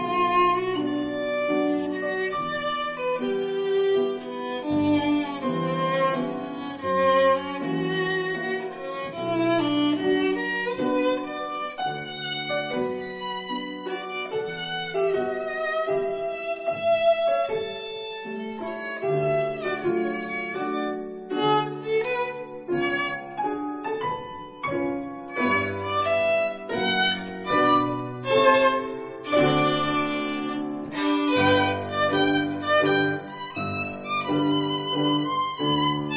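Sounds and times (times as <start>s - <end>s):
violin: 0.0s - 36.1s.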